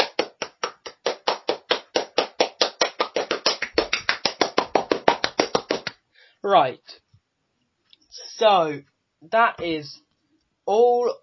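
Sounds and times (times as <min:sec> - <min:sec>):
round of applause: 0:00.0 - 0:05.9
speech: 0:06.4 - 0:07.0, 0:08.4 - 0:10.0, 0:10.7 - 0:11.2.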